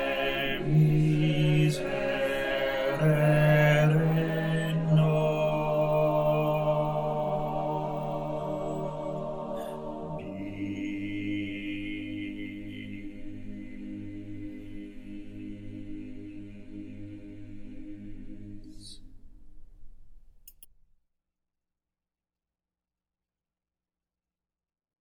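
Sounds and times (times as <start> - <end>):
bass voices of a choir singing: 0.0 - 19.2.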